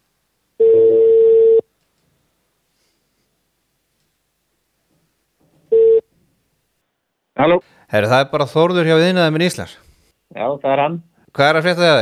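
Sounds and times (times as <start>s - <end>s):
telephone ringback tone: 0.6s - 1.6s, 5.7s - 6.0s
speech: 7.4s - 12.0s.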